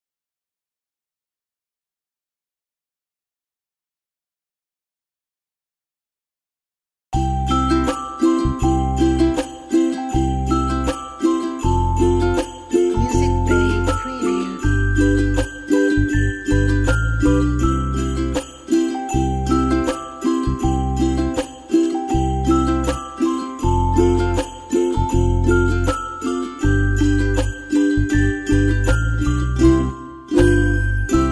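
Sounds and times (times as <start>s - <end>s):
ukulele Christmas tune: 7.2s - 31.3s.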